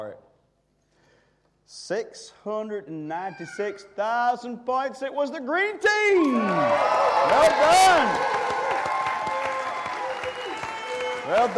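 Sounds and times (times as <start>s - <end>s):
speech: 1.7s - 8.6s, 11.3s - 11.5s
people cheering for the green team: 6.0s - 11.5s
applause for the green team at a points-scoring game: 6.2s - 11.5s.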